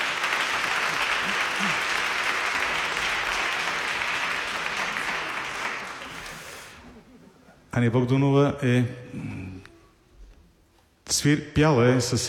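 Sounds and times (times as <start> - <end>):
audience applause: 0.0 - 6.8
speech: 7.8 - 9.6, 11.2 - 12.2.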